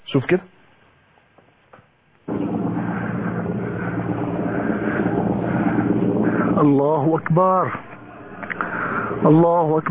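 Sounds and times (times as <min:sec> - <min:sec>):
speech: 0:00.1 - 0:00.6, 0:06.6 - 0:07.8, 0:09.2 - 0:09.9
barrel bomb explosion on neighbourhoods of Daraa al-Balad: 0:02.3 - 0:09.4.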